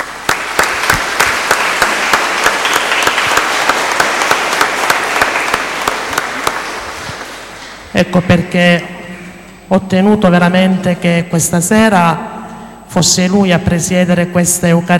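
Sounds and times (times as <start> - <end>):
audience applause: 0.0 - 7.6
speech: 8.0 - 9.0, 9.7 - 14.9.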